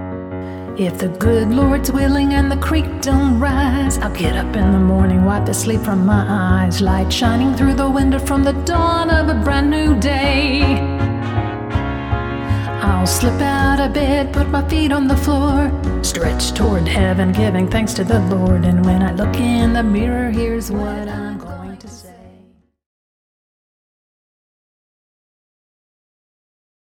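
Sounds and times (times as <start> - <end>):
vocals: 0.5 - 11.2, 12.4 - 22.7.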